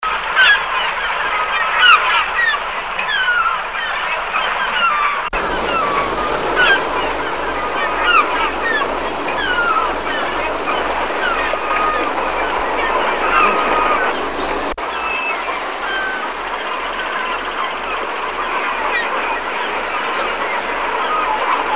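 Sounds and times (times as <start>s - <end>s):
gulls calling: 0.1s - 21.7s
steady background hiss: 5.4s - 21.7s.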